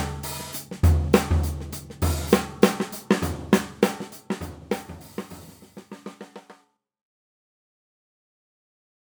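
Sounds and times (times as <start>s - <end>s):
5x14 snare drum: 0.0s - 6.6s.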